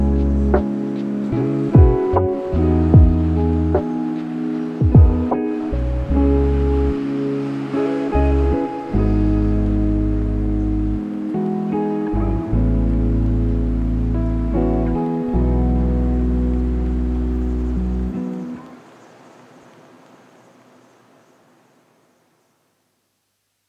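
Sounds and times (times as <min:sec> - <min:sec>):
lofi hip hop: 0:00.0 - 0:17.3.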